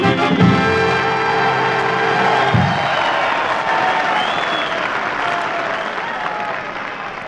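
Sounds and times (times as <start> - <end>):
studio audience applause: 0.2 - 7.2.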